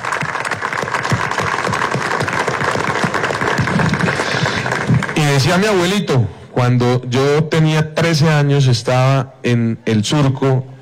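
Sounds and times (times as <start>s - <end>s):
audience applause: 0.0s - 5.6s
speech: 5.3s - 10.7s.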